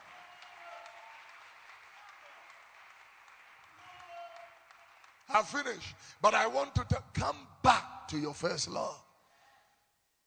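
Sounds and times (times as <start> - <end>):
audience applause: 0.0 - 5.8
speech: 5.3 - 9.0.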